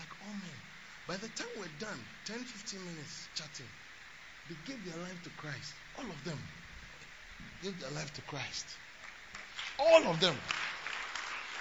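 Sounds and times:
speech: 1.1s - 3.8s, 4.5s - 6.6s, 7.6s - 8.8s, 9.6s - 10.6s
weak audience clapping: 9.0s - 11.6s.

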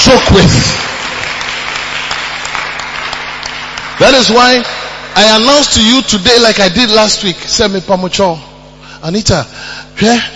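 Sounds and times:
audience clapping: 0.0s - 5.8s
speech: 0.1s - 1.0s, 4.0s - 10.3s.

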